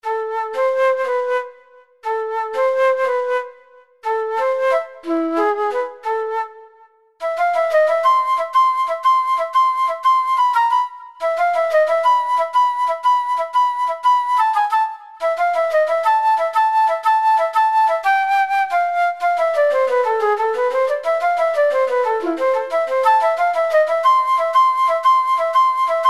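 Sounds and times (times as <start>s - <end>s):
flute: 0.0s - 26.0s.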